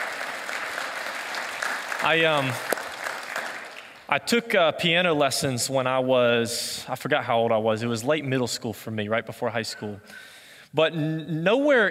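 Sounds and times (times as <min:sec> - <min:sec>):
audience applause: 0:00.0 - 0:04.1
speech: 0:02.0 - 0:02.8, 0:04.1 - 0:11.9.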